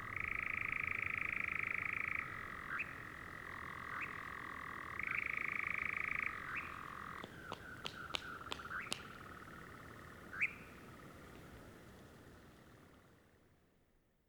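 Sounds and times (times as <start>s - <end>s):
European nightjar calling in Böda: 0.1s - 11.4s.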